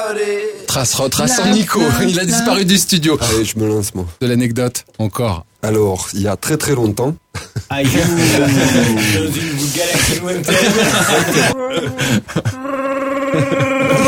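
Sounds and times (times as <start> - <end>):
speech: 0.0 - 14.0
laughter: 7.3 - 14.0
person imitating snoring: 11.9 - 14.0.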